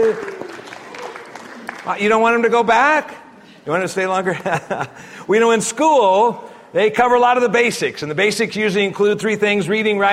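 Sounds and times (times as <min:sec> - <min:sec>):
speech: 0:00.0 - 0:00.4, 0:01.8 - 0:10.1
parents in an audience applauding: 0:00.0 - 0:02.5
laughter: 0:04.2 - 0:05.1.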